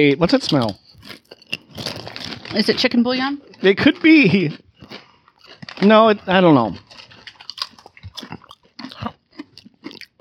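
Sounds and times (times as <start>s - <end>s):
speech: 0.0s - 1.9s, 2.5s - 4.6s, 5.8s - 6.9s
potato chip being bitten and chewed: 0.4s - 2.9s, 4.8s - 10.2s.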